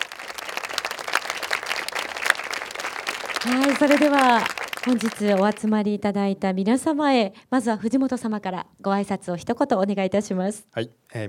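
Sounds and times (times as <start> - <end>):
audience applause: 0.0 - 5.8
speech: 3.4 - 11.2.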